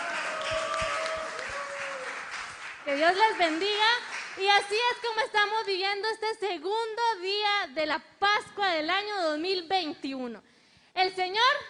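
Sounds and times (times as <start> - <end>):
audience applause: 0.0 - 4.4
speech: 2.9 - 11.6.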